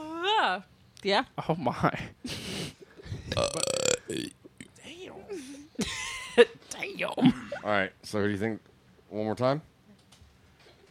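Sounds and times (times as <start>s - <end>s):
speech: 0.4s - 2.4s, 3.3s - 4.4s, 5.3s - 9.7s
burp: 3.3s - 4.7s.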